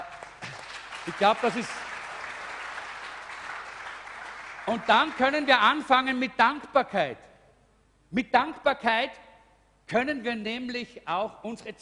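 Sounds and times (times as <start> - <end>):
audience applause: 0.0 - 5.4
speech: 1.0 - 1.9, 4.7 - 7.3, 8.1 - 9.2, 9.9 - 11.8.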